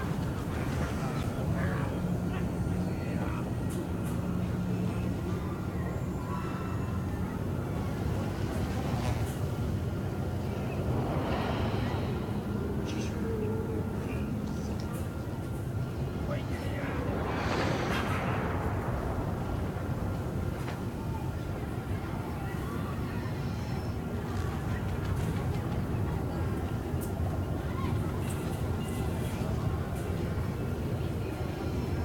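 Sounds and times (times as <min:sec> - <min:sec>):
market ambience: 0:00.0 - 0:32.0.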